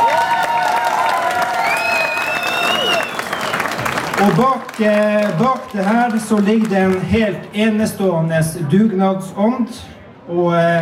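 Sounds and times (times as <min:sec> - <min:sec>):
audience applause: 0:00.0 - 0:07.0
speech: 0:04.2 - 0:10.8.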